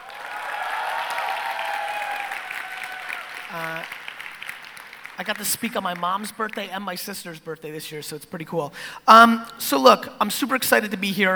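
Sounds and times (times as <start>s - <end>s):
audience applause: 0.0s - 5.7s
speech: 3.5s - 4.0s, 5.2s - 11.3s.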